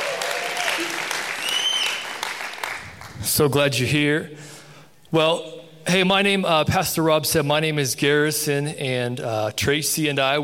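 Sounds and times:
audience applauding at a church young adults service: 0.0s - 3.2s
speech: 3.4s - 4.5s, 5.1s - 10.4s.

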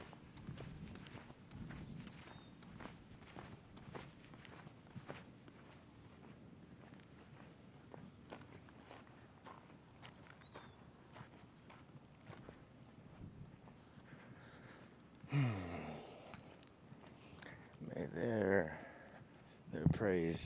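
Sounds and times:
footsteps on a walk around the block: 0.0s - 14.4s
people speaking: 17.8s - 19.0s, 19.7s - 20.4s.

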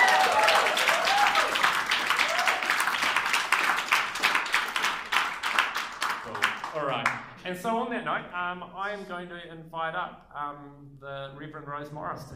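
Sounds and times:
audience applause: 0.0s - 7.3s
speech: 7.5s - 12.3s.

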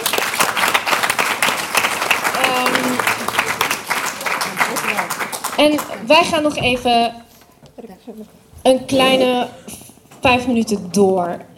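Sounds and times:
audience applause: 0.0s - 6.1s
speech: 5.6s - 7.2s, 8.0s - 11.5s.

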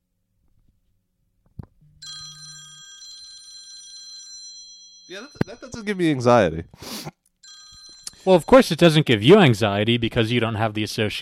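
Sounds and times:
phone alarm tone ringing: 2.0s - 5.9s, 7.4s - 9.5s
speech: 5.1s - 7.1s, 8.2s - 11.2s.

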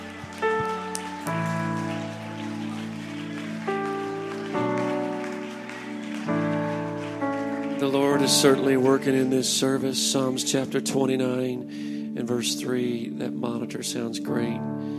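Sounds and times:
audience clapping hands: 0.0s - 10.3s
speech: 7.8s - 14.9s.

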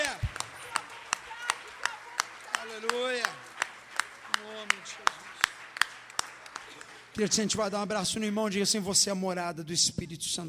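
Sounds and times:
audience clapping: 0.0s - 8.3s
speech: 7.2s - 10.4s.

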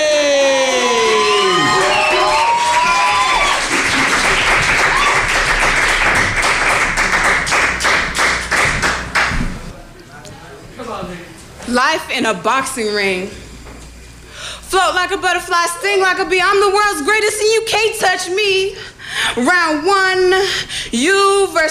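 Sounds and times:
crowd cheering and whooping: 0.0s - 7.2s
crowd applauding: 0.6s - 9.6s
speech: 11.8s - 13.4s, 14.7s - 21.6s.

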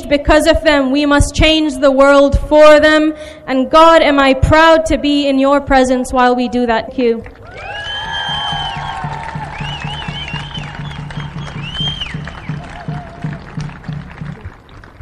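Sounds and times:
speech: 0.1s - 7.7s
audience applause: 7.3s - 15.0s
crowd cheering: 7.4s - 15.0s
high whistles: 7.5s - 13.8s.

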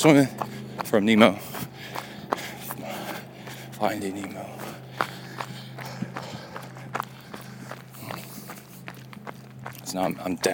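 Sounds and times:
speech: 0.0s - 1.6s, 3.8s - 4.6s, 9.9s - 10.5s
constant low hum: 0.0s - 10.5s
running footsteps of a jogger on an out-and-back run along a shaded street: 0.0s - 10.5s.

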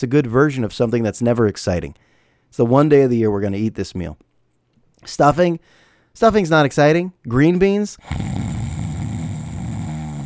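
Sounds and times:
speech: 0.0s - 4.3s, 5.0s - 8.4s
snoring sound effect: 8.0s - 10.2s.

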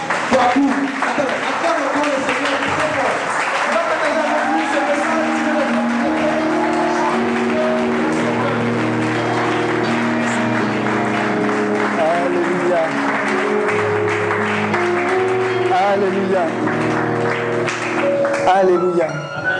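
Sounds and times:
church congregation clapping at a French-language worship service: 0.0s - 19.5s
church congregation acclaiming: 3.7s - 10.5s
sustained musical tones: 4.8s - 19.5s.

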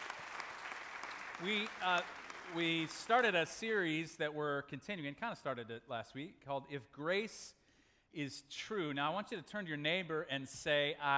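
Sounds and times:
audience clapping: 0.0s - 3.5s
speech: 1.4s - 11.1s.

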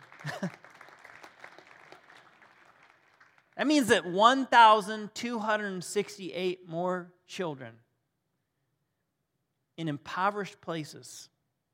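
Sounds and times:
clapping applause: 0.0s - 3.7s
speech: 3.6s - 7.8s, 9.8s - 11.3s.

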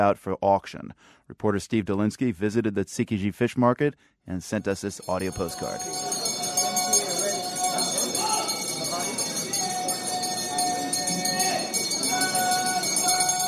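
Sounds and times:
speech: 0.0s - 6.3s
loud bells ringing at a fish market auction: 4.8s - 13.4s.

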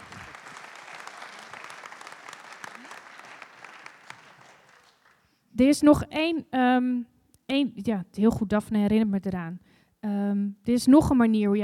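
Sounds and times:
audience applause: 0.0s - 5.2s
speech: 5.6s - 11.6s.

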